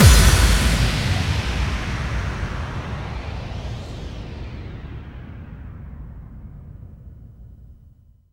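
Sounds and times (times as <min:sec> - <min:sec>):
bass drum kick with reverb: 0:00.0 - 0:03.5.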